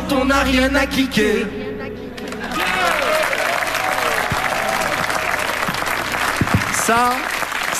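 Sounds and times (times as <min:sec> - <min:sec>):
speech: 0:00.1 - 0:01.6, 0:06.9 - 0:07.7
audience applause: 0:02.3 - 0:07.7
voices cheering: 0:02.4 - 0:07.7.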